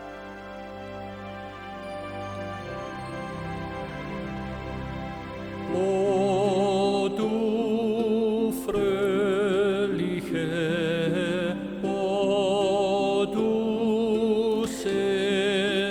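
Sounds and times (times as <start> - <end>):
instrumental accompaniment: 0.0 - 15.9
male voice singing a Sicilian hymn with wide vibrato: 5.6 - 15.9.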